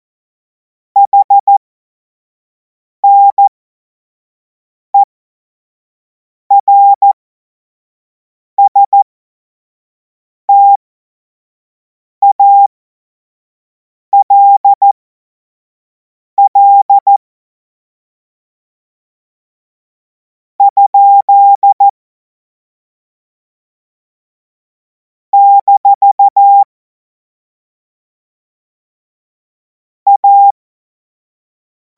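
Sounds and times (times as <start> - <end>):
CW Morse code beeps: 1.0 - 1.6, 3.0 - 3.5, 6.5 - 7.2, 8.6 - 9.0, 12.2 - 12.7, 14.2 - 15.0, 16.4 - 17.2, 20.6 - 21.9, 25.4 - 26.7, 30.1 - 30.5.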